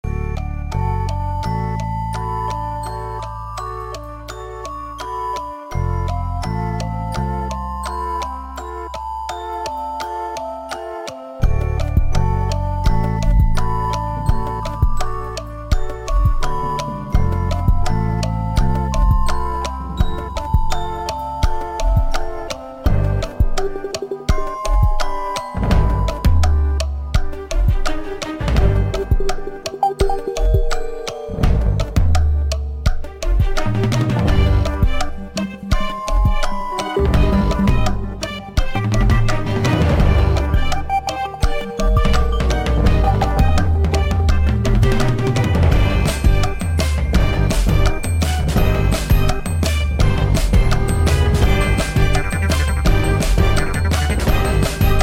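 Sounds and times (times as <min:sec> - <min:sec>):
in-game 60-second countdown music: 0:00.0 - 0:55.0.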